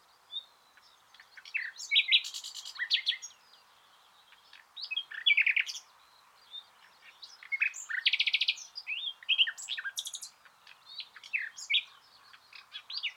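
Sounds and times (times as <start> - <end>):
common nightingale Luscinia megarhynchos singing: 0.0 - 13.1.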